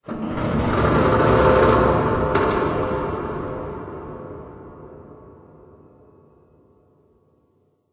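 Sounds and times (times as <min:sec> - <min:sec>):
distant metal groan: 0:00.0 - 0:04.3.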